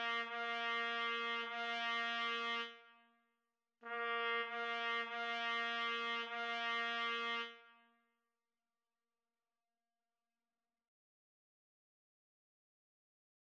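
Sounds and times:
trumpet duet: 0:00.0 - 0:02.8, 0:03.8 - 0:07.8.

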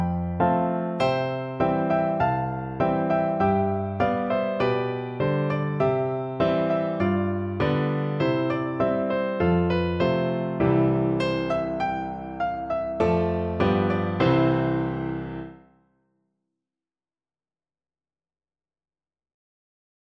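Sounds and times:
piano duet: 0:00.0 - 0:15.7.

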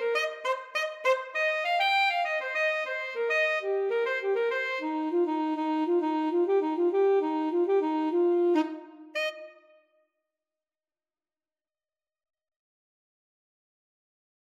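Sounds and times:
alto saxophone duet: 0:00.0 - 0:09.8.

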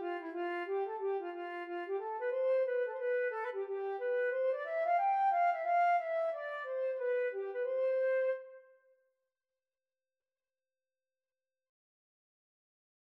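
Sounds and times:
flute tune: 0:00.0 - 0:08.6.

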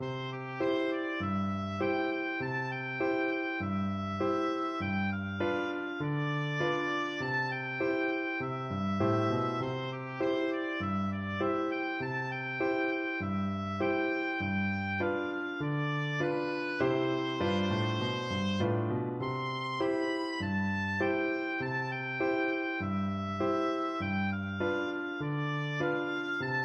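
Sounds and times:
oboe melody: 0:00.0 - 0:26.6.

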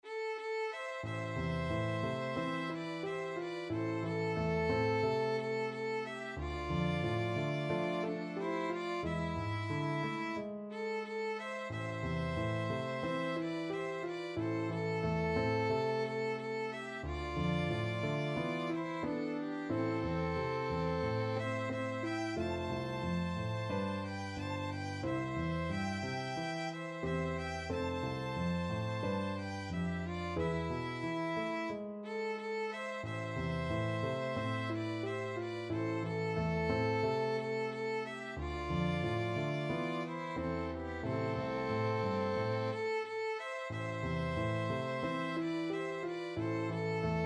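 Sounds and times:
violin duet: 0:00.0 - 0:47.2.

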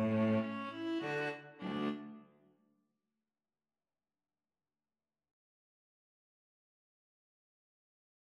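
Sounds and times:
string trio playing Neapolitan style: 0:00.0 - 0:02.3.

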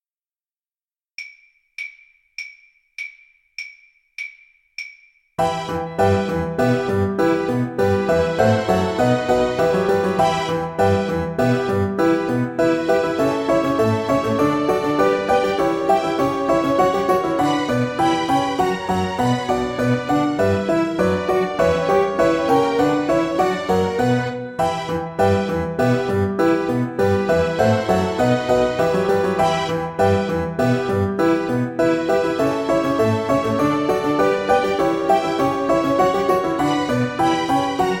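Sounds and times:
keyboard: 0:05.4 - 0:37.9.

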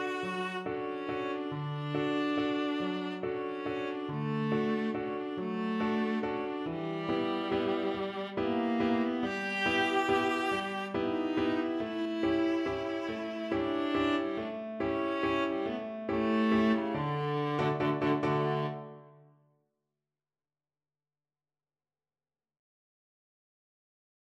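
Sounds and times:
viola playing a Viennese waltz: 0:00.0 - 0:19.2.

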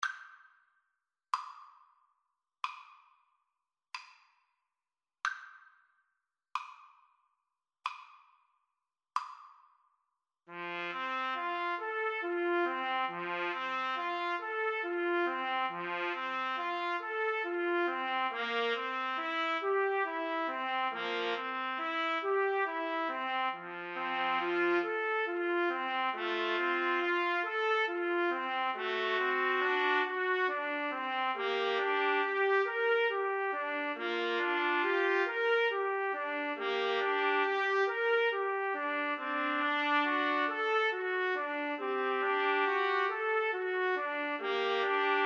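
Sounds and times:
trumpet trio: 0:10.5 - 0:45.2.

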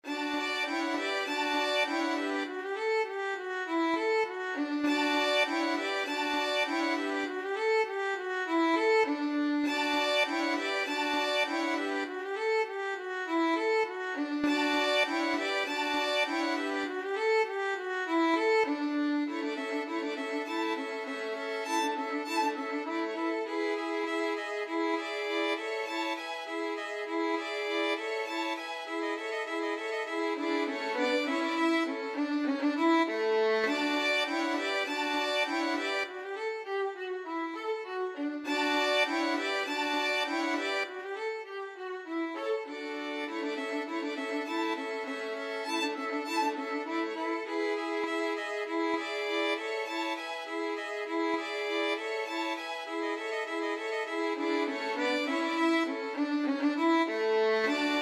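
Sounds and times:
violin quartet playing a musette: 0:00.0 - 0:58.0.

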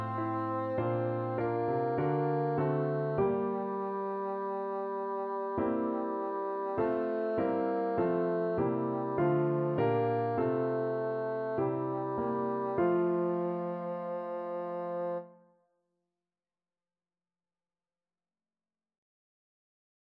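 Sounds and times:
bassoon playing a hymn: 0:00.0 - 0:15.4.

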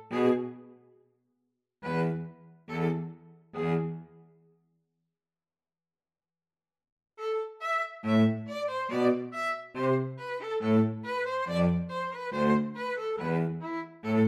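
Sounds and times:
string trio playing a gavotte: 0:00.0 - 0:00.6, 0:01.8 - 0:04.1, 0:07.3 - 0:14.2.

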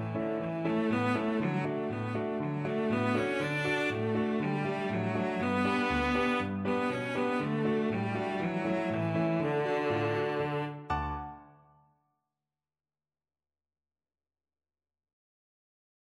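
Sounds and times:
cello: 0:00.0 - 0:11.3.

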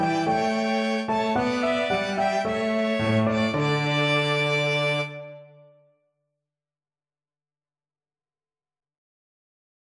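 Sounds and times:
piano quartet: 0:00.0 - 0:05.6.

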